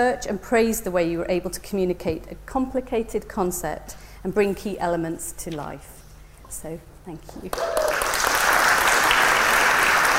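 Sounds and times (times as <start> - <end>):
speech: 0.0 - 5.9, 6.5 - 8.1
audience applause: 7.5 - 10.1.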